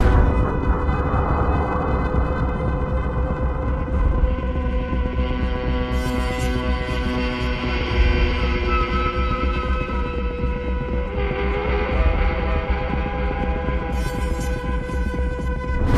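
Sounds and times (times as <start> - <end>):
ambience: 0.0 - 15.9.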